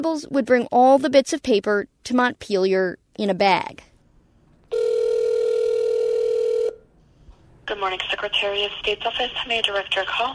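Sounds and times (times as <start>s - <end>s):
speech: 0.0s - 3.9s, 7.7s - 10.3s
electronic telephone ring tone: 4.7s - 6.9s.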